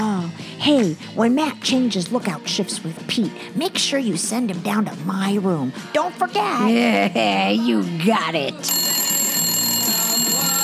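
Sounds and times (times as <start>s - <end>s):
speech: 0.6s - 8.8s
electronic telephone alert ringing: 8.7s - 10.6s.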